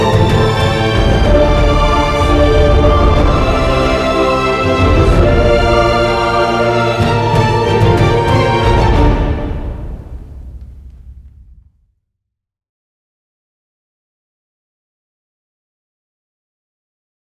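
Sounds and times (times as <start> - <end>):
short orchestral mix: 0.0 - 10.6.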